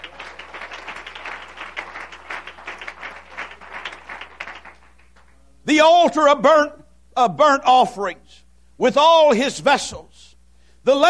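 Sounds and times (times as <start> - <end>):
audience clapping hands: 0.0 - 5.4
speech: 5.6 - 10.1, 10.8 - 11.0.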